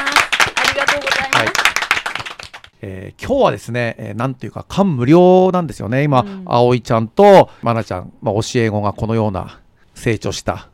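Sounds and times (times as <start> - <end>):
audience clapping: 0.0 - 2.8
speech: 2.8 - 10.7.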